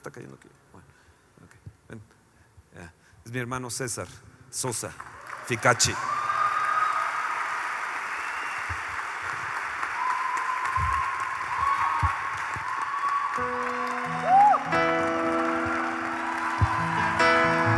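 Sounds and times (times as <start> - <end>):
speech: 0.0 - 1.0, 1.9 - 2.2, 2.8 - 6.2
audience applause: 5.0 - 17.7.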